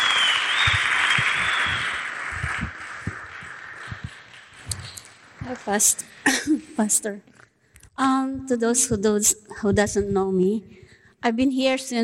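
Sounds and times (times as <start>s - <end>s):
low thumps: 0.0s - 5.8s, 8.0s - 10.4s
crowd clapping: 0.0s - 6.2s
speech: 5.6s - 7.3s, 8.0s - 12.0s.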